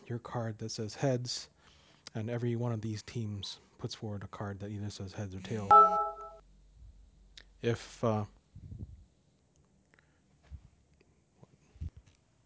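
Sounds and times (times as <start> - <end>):
speech: 0.1 - 6.0, 7.6 - 8.4
soft speech: 2.1 - 5.9
phone text message alert buzzing: 5.6 - 6.4.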